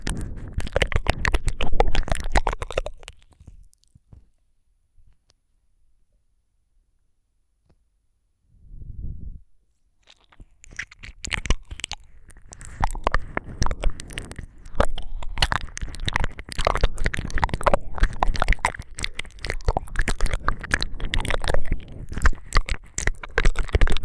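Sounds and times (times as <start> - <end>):
ear licking with extra saliva ASMR: 0.0 - 4.0, 10.0 - 24.0.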